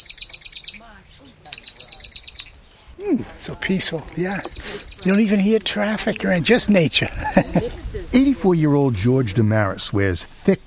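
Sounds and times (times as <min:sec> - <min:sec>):
marsh wren singing rattling trills: 0:00.0 - 0:02.7, 0:04.3 - 0:05.4
speech: 0:00.7 - 0:02.0, 0:03.0 - 0:10.6
laughter: 0:07.0 - 0:08.1.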